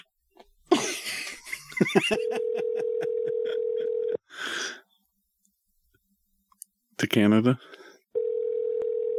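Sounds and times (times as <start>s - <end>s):
laughter: 0.7s - 4.0s
speech: 2.0s - 3.6s, 7.0s - 7.8s
telephone ringing tone on a call: 2.2s - 4.2s, 8.2s - 9.1s.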